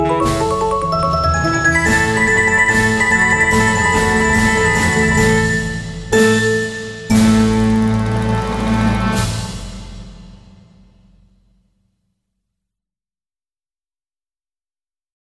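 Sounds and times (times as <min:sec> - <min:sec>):
fandango music: 0:00.0 - 0:10.1.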